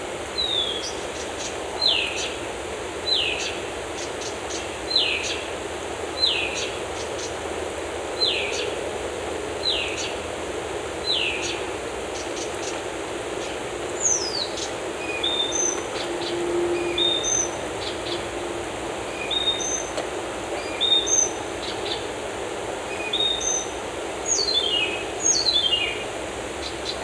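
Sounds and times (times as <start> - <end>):
birds in forest: 0.0 - 27.0.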